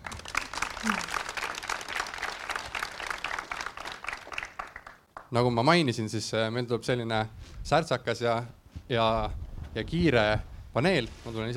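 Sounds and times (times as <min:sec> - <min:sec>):
audience applause welcoming panel: 0:00.0 - 0:05.3
speech: 0:05.3 - 0:11.5.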